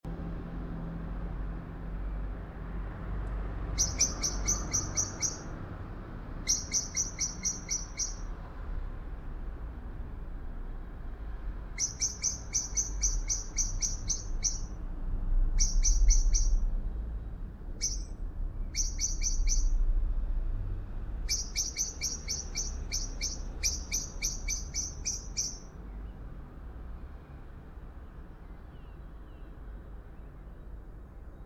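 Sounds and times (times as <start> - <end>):
low traffic rumble: 0.0 - 31.4
Eurasian blackbird calling: 3.7 - 5.6, 6.4 - 8.4, 11.8 - 14.8, 15.6 - 16.7, 17.8 - 19.8, 21.3 - 25.8.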